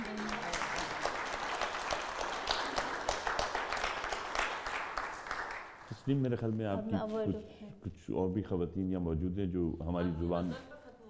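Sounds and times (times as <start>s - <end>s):
audience applause: 0.0s - 5.8s
speech: 6.1s - 10.7s.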